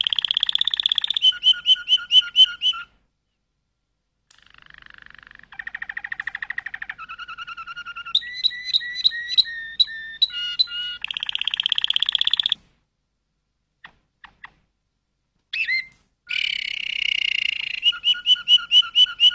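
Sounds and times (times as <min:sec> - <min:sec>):
Waterslager canary song: 0:00.0 - 0:03.0, 0:04.3 - 0:12.7, 0:15.5 - 0:19.3.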